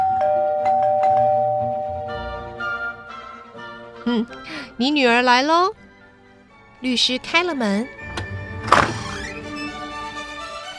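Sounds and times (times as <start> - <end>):
doorbell ringing: 0.0 - 2.3
speech: 4.1 - 5.8, 6.8 - 8.0.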